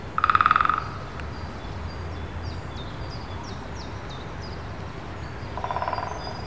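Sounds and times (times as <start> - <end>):
woodpecker pulses: 0.2 - 1.3, 5.6 - 6.3.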